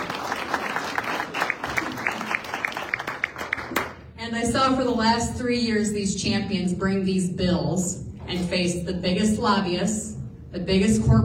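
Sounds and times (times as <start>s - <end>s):
audience applause: 0.0s - 4.0s
speech: 4.3s - 11.2s.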